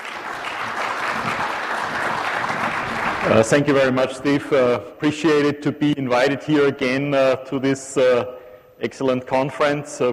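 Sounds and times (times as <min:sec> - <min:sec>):
audience applause at a conference welcoming two speakers: 0:00.0 - 0:03.9
speech: 0:03.2 - 0:10.1.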